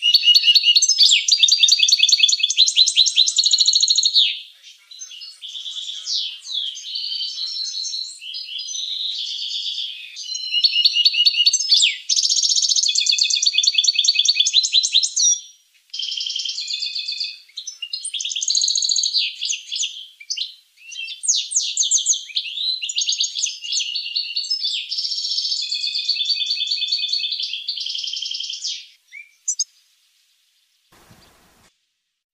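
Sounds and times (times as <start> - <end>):
finch song: 0.0 - 29.7, 31.0 - 31.7
rustling noise: 31.0 - 31.8.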